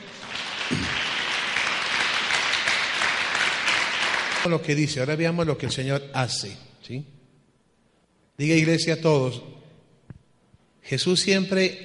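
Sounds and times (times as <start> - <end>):
audience applause: 0.0 - 4.5
speech: 4.4 - 7.2, 8.4 - 9.6, 10.8 - 11.8.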